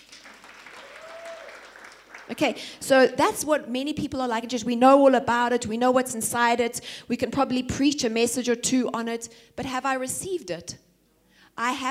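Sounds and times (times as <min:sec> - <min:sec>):
audience applause from a small crowd: 0:00.0 - 0:02.4
speech: 0:02.3 - 0:10.8, 0:11.6 - 0:11.9.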